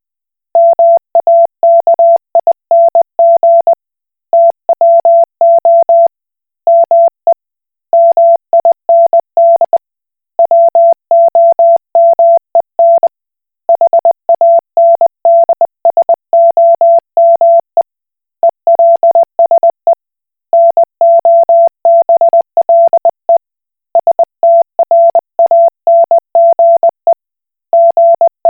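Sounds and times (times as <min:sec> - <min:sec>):
Koch Morse code beeps: 0:00.6 - 0:03.8, 0:04.3 - 0:06.1, 0:06.7 - 0:07.1, 0:07.9 - 0:09.8, 0:10.4 - 0:13.1, 0:13.7 - 0:17.7, 0:18.7 - 0:20.0, 0:20.5 - 0:23.4, 0:24.0 - 0:27.2, 0:27.7 - 0:28.4.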